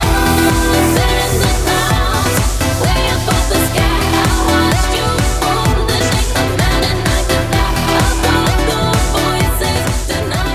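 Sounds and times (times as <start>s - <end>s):
musical stinger: 0.0s - 10.4s.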